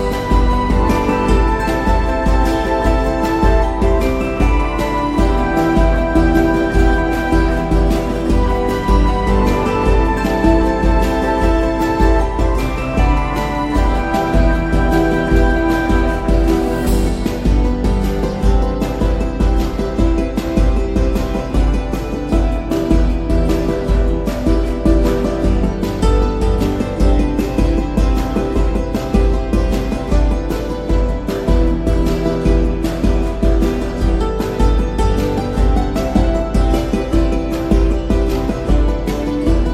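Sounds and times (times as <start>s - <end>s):
medieval bardcore style music: 0.0s - 39.7s.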